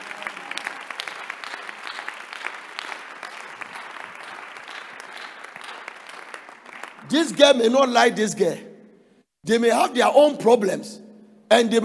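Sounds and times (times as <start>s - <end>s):
audience applause: 0.0s - 7.6s
speech: 7.1s - 8.7s, 9.4s - 11.8s.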